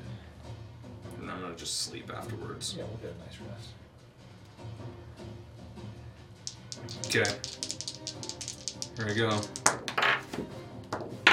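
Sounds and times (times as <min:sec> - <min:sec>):
speech: 0:01.4 - 0:03.8, 0:06.9 - 0:08.3, 0:09.0 - 0:10.6
dice clattering across a hard wooden surface: 0:06.4 - 0:10.3, 0:10.9 - 0:11.3.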